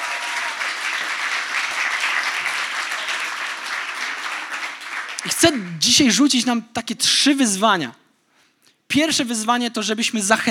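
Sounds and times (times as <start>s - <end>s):
audience applause: 0.0s - 5.8s
speech: 5.2s - 8.0s, 8.9s - 10.4s.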